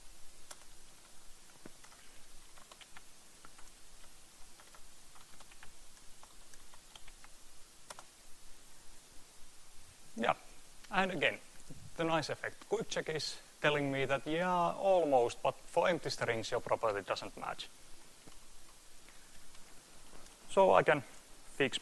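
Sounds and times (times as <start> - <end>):
typing on a computer keyboard: 0.4 - 8.1
speech: 11.0 - 11.4, 12.0 - 17.8, 20.5 - 21.8.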